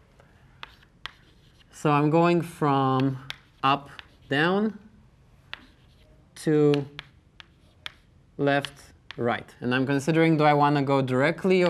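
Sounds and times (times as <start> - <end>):
writing on a board during a dynamic programming recitation: 0.5 - 2.0, 3.0 - 4.6, 5.5 - 9.2
speech: 1.8 - 4.8, 6.4 - 7.0, 8.4 - 11.6.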